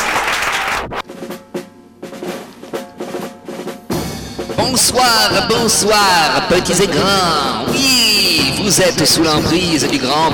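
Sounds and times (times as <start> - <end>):
audience applause: 0.0 - 1.0
speech: 4.6 - 10.3
upbeat music with percussive hits: 4.6 - 10.3.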